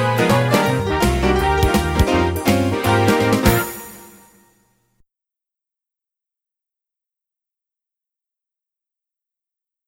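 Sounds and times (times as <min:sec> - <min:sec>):
Christmas song: 0:00.0 - 0:04.5.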